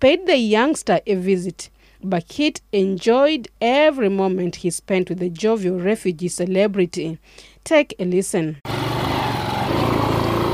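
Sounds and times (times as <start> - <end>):
speech: 0.0 - 8.7
motorcycle taxi engine: 8.7 - 10.5.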